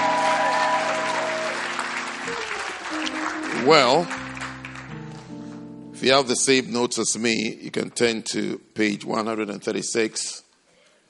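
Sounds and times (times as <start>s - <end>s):
audience clapping: 0.0s - 5.6s
speech: 3.6s - 4.2s, 6.0s - 10.4s.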